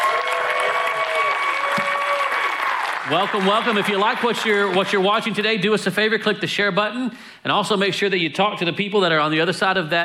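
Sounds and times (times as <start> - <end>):
audience applause: 0.0 - 5.0
speech: 3.1 - 10.0.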